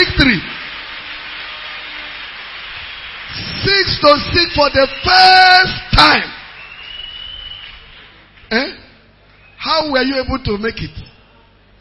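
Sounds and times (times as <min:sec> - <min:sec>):
church audience clapping: 0:00.0 - 0:08.7
speech: 0:04.0 - 0:06.4, 0:08.5 - 0:08.8, 0:09.6 - 0:11.0.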